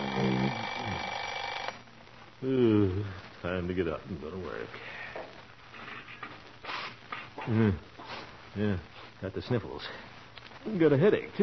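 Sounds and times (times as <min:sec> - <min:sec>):
alarm clock ringing: 0:00.0 - 0:01.8
speech: 0:00.2 - 0:00.8, 0:02.4 - 0:05.0, 0:07.4 - 0:11.4.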